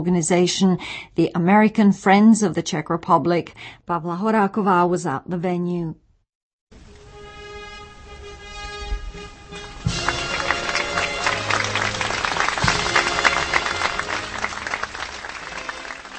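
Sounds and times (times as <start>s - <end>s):
speech: 0.0s - 6.0s
crowd applauding at statue unveiling: 9.8s - 16.1s.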